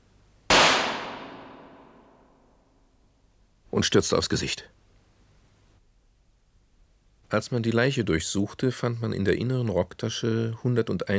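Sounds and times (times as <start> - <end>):
gunshot in a radio play: 0.5 - 2.2
speech: 3.8 - 4.8, 7.3 - 11.1.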